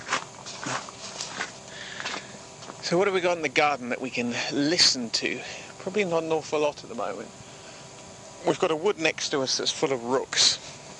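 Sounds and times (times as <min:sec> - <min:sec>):
footsteps crunching on a gravel yard: 0:00.0 - 0:02.8
speech: 0:02.9 - 0:07.4, 0:08.4 - 0:10.7.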